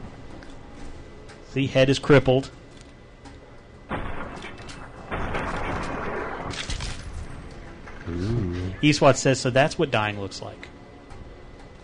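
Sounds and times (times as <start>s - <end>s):
speech: 1.5s - 2.6s, 8.8s - 10.7s
gunfire in a video game played with a controller: 3.9s - 7.3s.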